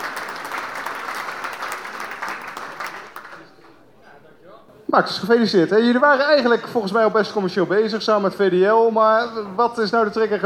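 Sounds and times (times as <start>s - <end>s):
crowd clapping: 0.0s - 3.8s
speech: 5.0s - 10.4s.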